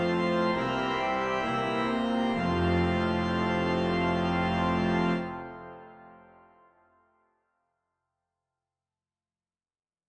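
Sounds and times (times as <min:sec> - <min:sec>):
organ: 0:00.0 - 0:06.7.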